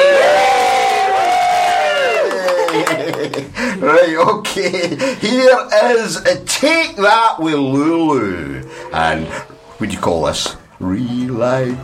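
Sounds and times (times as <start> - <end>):
cast cheering: 0.0 - 4.2
laughter: 2.0 - 5.3
speech: 3.8 - 11.8.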